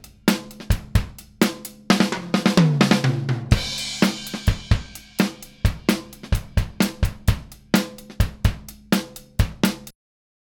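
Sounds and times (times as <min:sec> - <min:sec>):
drums: 0:00.0 - 0:09.9.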